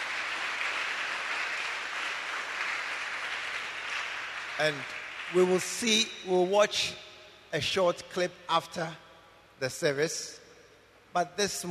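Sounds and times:
audience clapping: 0:00.0 - 0:06.1
speech: 0:04.6 - 0:09.0, 0:09.6 - 0:10.4, 0:11.1 - 0:11.6.

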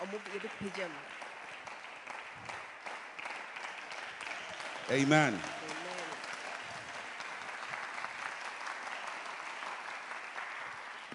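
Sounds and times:
audience clapping: 0:00.0 - 0:11.1
speech: 0:00.1 - 0:01.3, 0:04.9 - 0:05.6.

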